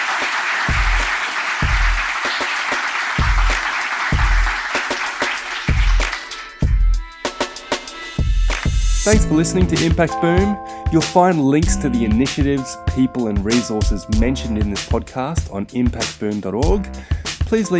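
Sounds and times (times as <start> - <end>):
audience applause for a panel: 0.0 - 6.4
low thumping beat: 0.7 - 2.0, 3.2 - 4.6, 7.8 - 17.7
tonal music: 6.4 - 15.8, 17.6 - 17.7
speech: 9.0 - 17.7.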